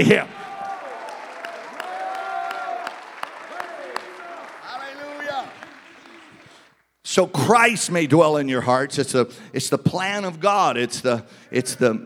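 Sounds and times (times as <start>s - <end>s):
speech: 0.0s - 0.4s, 7.1s - 12.0s
crowd clapping hands: 0.0s - 6.9s.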